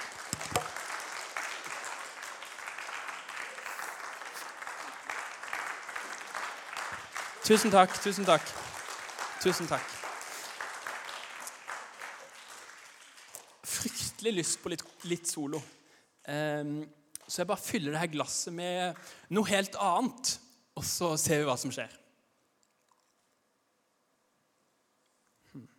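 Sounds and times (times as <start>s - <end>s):
audience applause: 0.0s - 15.2s
speech: 7.5s - 8.7s, 9.4s - 10.0s, 14.2s - 22.0s.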